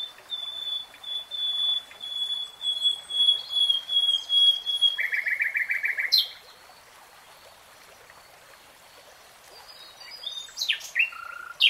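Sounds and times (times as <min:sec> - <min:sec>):
nightingale singing: 0:00.0 - 0:06.4, 0:10.0 - 0:11.6.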